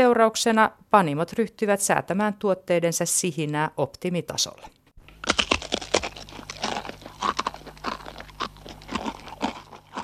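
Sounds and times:
speech: 0.0s - 5.4s
person chewing crunchy food: 5.0s - 10.0s.

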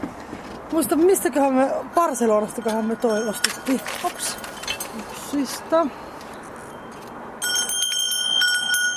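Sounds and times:
speech: 0.7s - 4.6s, 5.3s - 6.0s
small bell being rung: 2.4s - 5.2s, 6.6s - 8.9s.

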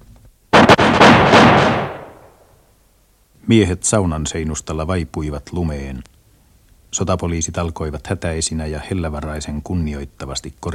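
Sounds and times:
firing squad rifle volley: 0.5s - 2.4s
speech: 3.5s - 6.1s, 6.9s - 10.7s.

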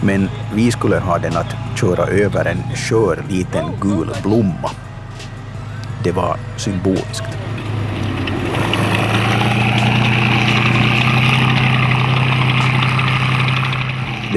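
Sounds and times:
speech: 0.0s - 4.8s, 6.0s - 7.4s
World War II tank engine roaring: 0.0s - 14.3s.

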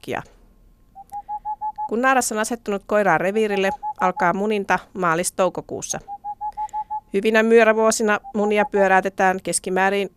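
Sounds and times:
speech: 0.0s - 0.4s, 1.9s - 6.1s, 7.1s - 10.1s
Tengmalm's owl giving hollow whistled hoots: 1.0s - 2.0s, 3.6s - 4.3s, 6.0s - 7.1s.

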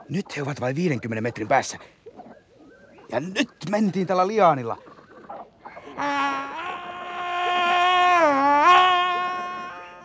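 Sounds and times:
speech: 0.1s - 2.0s, 3.1s - 4.9s, 6.0s - 6.5s
person screaming: 5.8s - 10.0s.

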